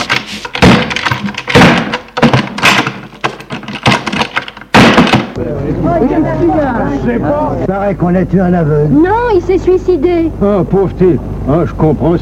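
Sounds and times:
gun dropped falling to the floor: 0.0 - 5.4
knocking thuds and clatter: 0.0 - 5.4
speech: 5.8 - 12.2.

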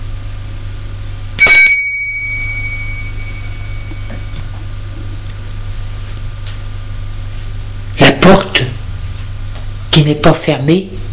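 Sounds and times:
doorbell ringing: 1.4 - 4.6
speech: 10.0 - 11.0.

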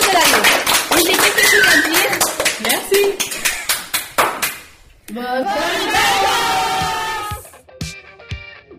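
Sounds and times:
audience clapping: 0.0 - 4.8
voices calling out: 5.2 - 7.5.

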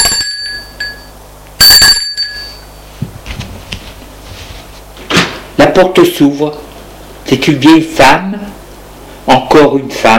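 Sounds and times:
doorbell ringing: 0.0 - 2.9
speech: 5.8 - 6.6, 7.3 - 8.6, 9.3 - 10.1.

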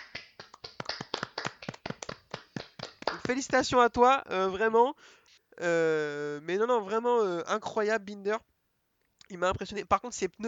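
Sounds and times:
hosts applauding: 0.0 - 3.7
speech: 3.3 - 8.5, 9.3 - 10.4.

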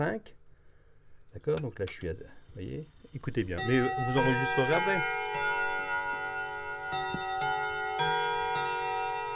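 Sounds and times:
speech: 0.0 - 0.4, 1.3 - 5.6
clock chiming: 3.5 - 9.3.

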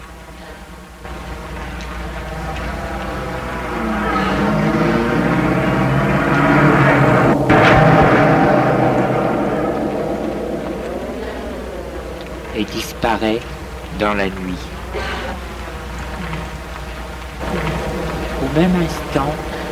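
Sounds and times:
car engine starting and driving off: 0.0 - 19.7
speech: 13.1 - 14.8, 18.6 - 19.5.

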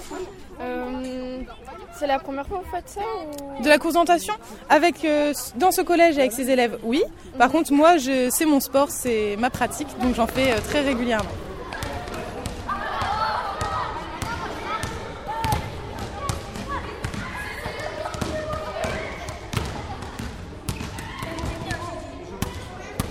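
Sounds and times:
speech: 0.2 - 11.4
basketballs dribbled by pupils in a school gym: 9.0 - 23.0.

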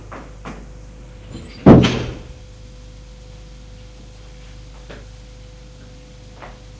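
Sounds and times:
door opening: 1.3 - 2.4.

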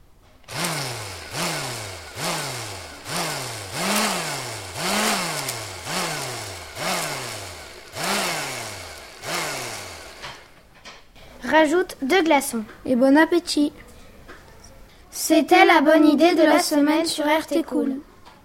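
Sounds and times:
blender mixing milk and Nutella: 0.5 - 10.6
speech: 11.5 - 13.8, 15.3 - 18.1.

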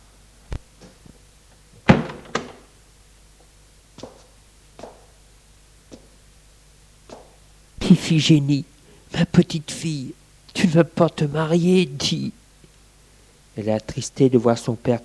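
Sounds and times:
door swinging shut with a heavy thump: 1.8 - 2.7
speech: 7.9 - 12.4, 13.6 - 15.0.

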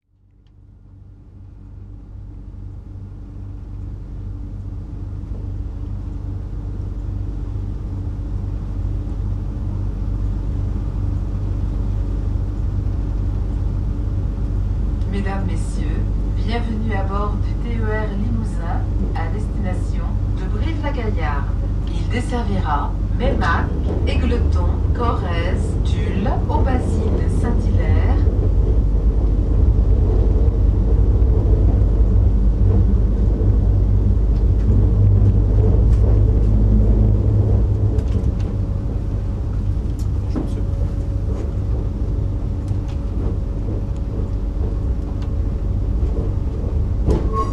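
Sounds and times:
train Ussel Brive: 0.2 - 47.5.

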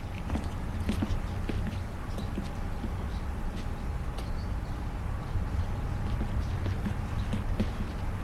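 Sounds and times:
footsteps in a street: 0.0 - 4.4, 5.6 - 8.2
low rumble: 0.0 - 8.2.

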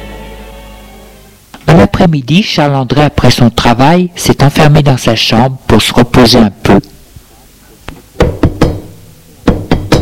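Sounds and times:
speech: 1.7 - 6.9
knocking on a door: 8.2 - 9.9.

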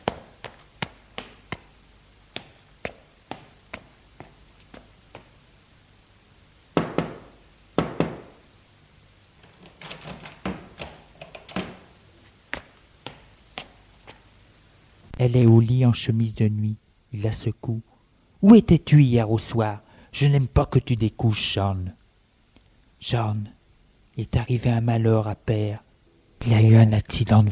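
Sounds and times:
knocking on a door: 6.8 - 8.4
speech: 15.2 - 22.0, 23.0 - 23.6, 24.2 - 25.8, 26.4 - 27.5.

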